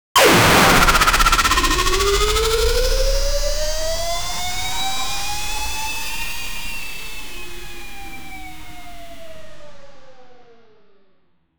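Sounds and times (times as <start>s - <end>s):
alien sci-fi blaster: 0.2s - 5.7s.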